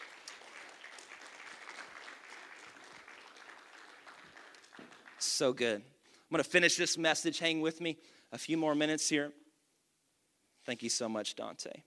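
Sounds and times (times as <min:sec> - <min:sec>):
audience clapping hands: 0:00.0 - 0:05.7
speech: 0:05.2 - 0:09.4, 0:10.6 - 0:11.8.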